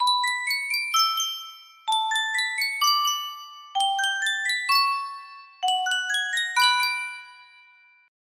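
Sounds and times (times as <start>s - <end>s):
Sankyo miniature music box: 0.0s - 8.1s.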